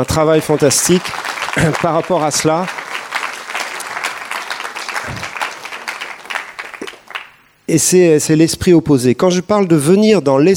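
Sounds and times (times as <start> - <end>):
speech: 0.0 - 2.8, 7.7 - 10.5
applause: 0.0 - 7.7.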